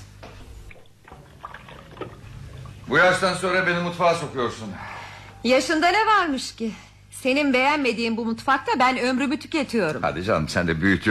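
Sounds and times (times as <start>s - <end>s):
running water from a kitchen tap while washing hands: 0.2s - 4.3s
water splashing: 0.4s - 3.8s
speech: 2.9s - 11.0s.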